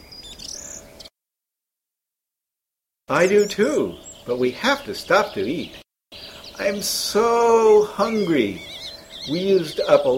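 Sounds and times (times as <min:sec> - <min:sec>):
birds singing in a winter forest: 0:00.0 - 0:01.1, 0:03.1 - 0:10.1
speech: 0:03.1 - 0:05.8, 0:06.6 - 0:10.1.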